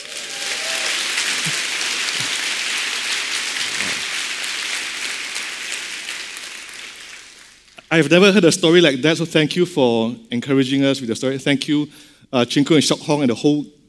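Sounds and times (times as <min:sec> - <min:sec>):
audience applause: 0:00.0 - 0:07.9
speech: 0:07.9 - 0:13.8.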